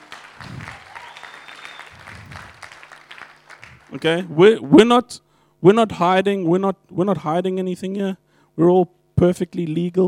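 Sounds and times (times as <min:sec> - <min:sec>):
audience clapping: 0:00.0 - 0:04.3
speech: 0:03.9 - 0:10.0.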